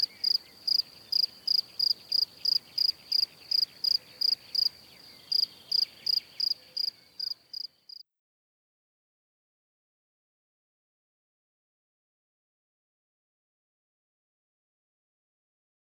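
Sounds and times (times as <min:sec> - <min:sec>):
cricket chirping: 0:00.0 - 0:08.0.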